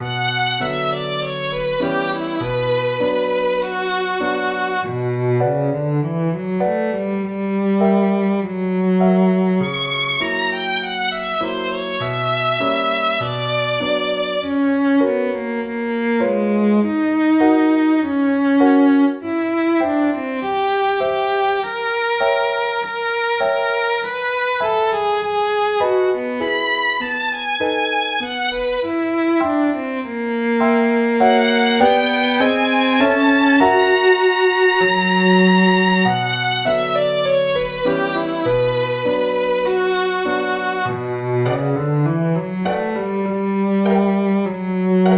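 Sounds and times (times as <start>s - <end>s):
music for conversations: 0.0s - 45.1s.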